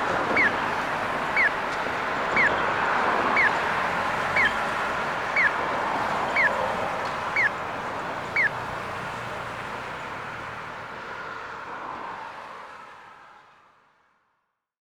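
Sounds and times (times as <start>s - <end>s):
piyo acoustic crossing signal in Aichi: 0.0s - 8.8s.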